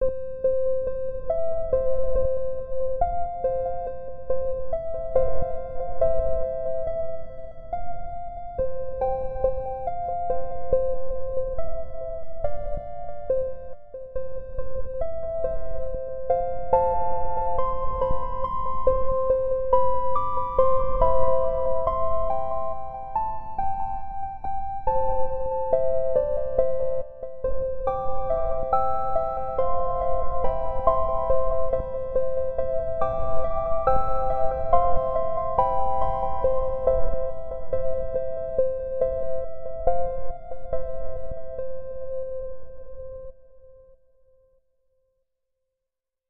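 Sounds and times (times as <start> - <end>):
music box: 0.1 - 43.2.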